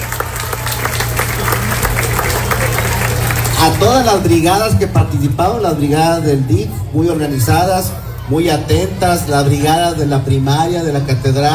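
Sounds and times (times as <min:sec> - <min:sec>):
audience applause: 0:00.0 - 0:04.5
speech: 0:03.8 - 0:11.5.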